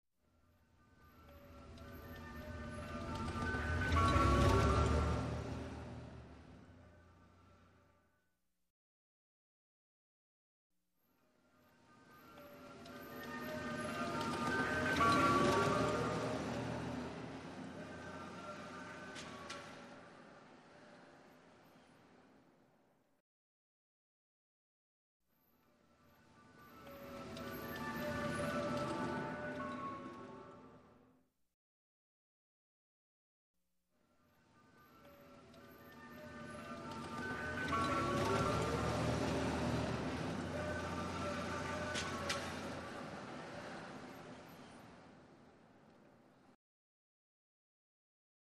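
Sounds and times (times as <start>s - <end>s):
ice cream truck passing by: 0.4s - 8.1s, 11.6s - 22.2s, 26.0s - 31.0s, 34.4s - 45.6s.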